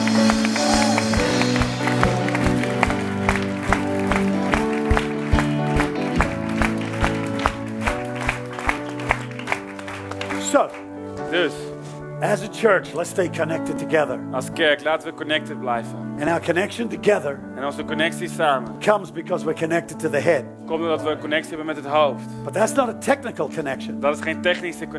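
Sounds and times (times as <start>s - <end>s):
audience clapping: 0.0s - 11.0s
speech: 12.3s - 24.9s.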